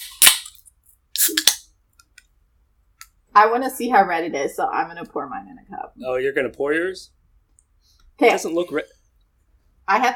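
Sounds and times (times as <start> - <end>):
soda cans being cracked open: 0.0 - 1.7
speech: 3.4 - 7.2, 8.2 - 9.0, 9.9 - 10.1.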